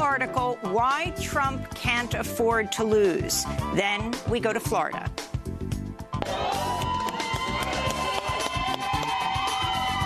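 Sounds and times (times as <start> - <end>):
speech: 0.2 - 5.4, 6.3 - 6.7
supporters cheering outside a polling place in Florida: 6.2 - 10.0.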